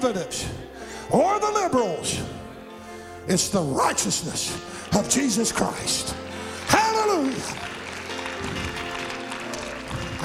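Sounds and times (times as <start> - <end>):
speech: 0.0 - 2.4, 3.2 - 7.8
audience clapping: 4.0 - 10.2.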